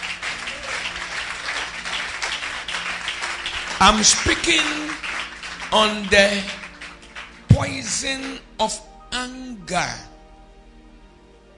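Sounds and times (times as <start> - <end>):
audience clapping: 0.0 - 8.8
speech: 3.8 - 4.9, 5.7 - 6.6, 7.6 - 10.1.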